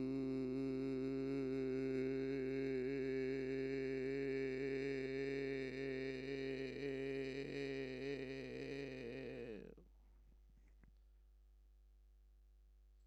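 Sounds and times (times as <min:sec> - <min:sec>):
person singing vocals, not overdriven: 0:00.0 - 0:09.8.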